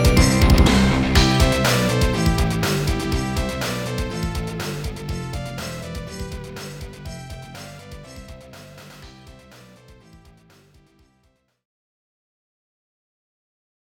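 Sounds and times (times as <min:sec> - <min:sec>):
Christmas song: 0:00.0 - 0:06.3.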